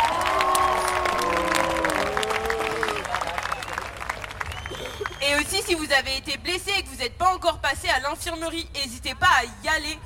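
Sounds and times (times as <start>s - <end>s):
scattered cheers and raised voices: 0.0s - 5.6s
crowd clapping: 0.0s - 5.9s
speech: 5.6s - 10.0s.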